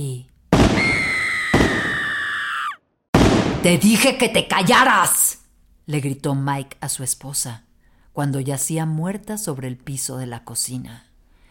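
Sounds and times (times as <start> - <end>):
shotgun blast: 0.5 - 2.0, 3.1 - 3.8
speech: 3.6 - 5.2, 5.9 - 11.1.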